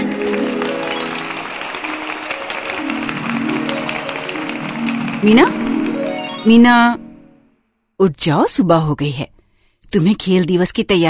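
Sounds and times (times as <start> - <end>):
group clapping: 0.0 - 7.0
bright sliding musical tone: 0.0 - 7.6
speech: 5.2 - 5.6, 6.4 - 7.0, 8.0 - 11.0.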